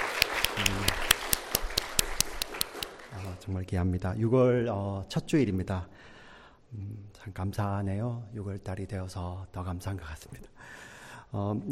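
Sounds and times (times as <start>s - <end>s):
audience applause: 0.0s - 3.2s
speech: 3.5s - 6.1s, 6.7s - 11.7s.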